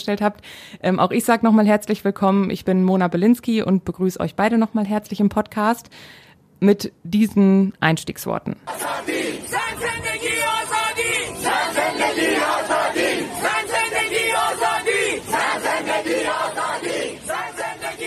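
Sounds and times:
speech: 0.0s - 9.3s
crowd of women chanting a slogan: 8.6s - 18.0s.

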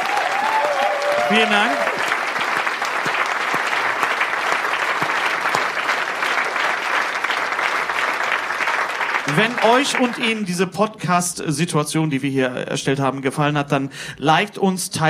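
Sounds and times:
audience applause: 0.0s - 10.6s
speech: 1.3s - 1.9s, 9.3s - 15.0s.

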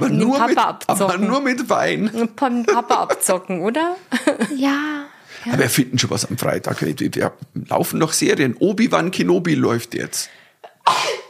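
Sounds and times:
speech: 0.0s - 11.2s
laughter: 2.5s - 3.5s
person sneezing: 10.8s - 11.2s.

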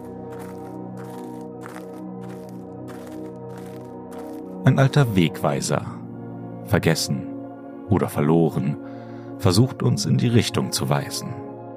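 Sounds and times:
crunching footsteps: 0.0s - 4.7s
speech: 4.6s - 6.0s, 6.7s - 7.3s, 7.9s - 11.5s.

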